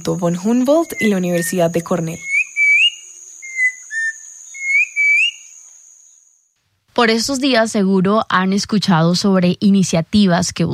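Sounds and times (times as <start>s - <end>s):
speech: 0.0s - 2.3s, 7.0s - 10.7s
mountain grackle song: 0.0s - 6.4s.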